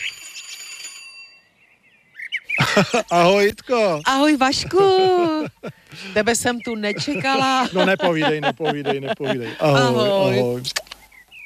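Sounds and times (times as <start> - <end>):
small gate bell ringing: 0.0 - 1.6
laughter: 2.6 - 3.5, 4.5 - 10.7
speech: 2.8 - 10.8.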